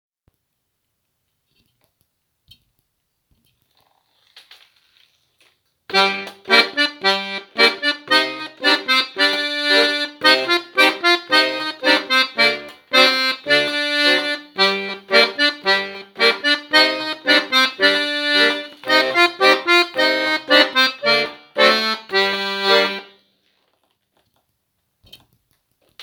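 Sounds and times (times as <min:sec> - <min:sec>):
Scottish music at 110 bpm: 0:05.9 - 0:23.2.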